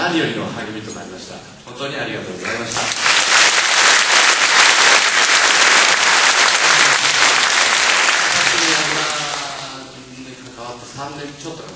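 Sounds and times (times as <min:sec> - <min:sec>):
speech: 0:00.0 - 0:03.2, 0:11.1 - 0:11.7
audience applause: 0:02.5 - 0:09.9.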